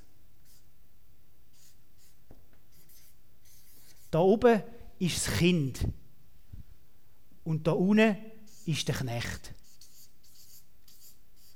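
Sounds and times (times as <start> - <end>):
hiss: 0.0 - 11.5
writing on a board: 0.4 - 0.7, 1.5 - 4.2, 9.4 - 11.5
speech: 4.1 - 6.0, 7.4 - 9.6.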